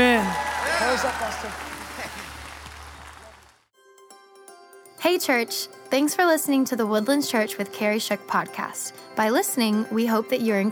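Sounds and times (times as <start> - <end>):
audience clapping: 0.0 - 3.7
speech: 1.0 - 1.7, 5.0 - 10.7.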